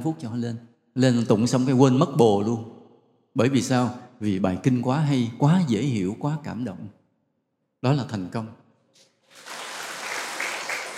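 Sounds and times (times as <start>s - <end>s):
speech: 0.0s - 2.8s, 3.4s - 7.0s, 7.8s - 9.5s
audience applause at a Buddhist teaching talk: 9.3s - 10.9s.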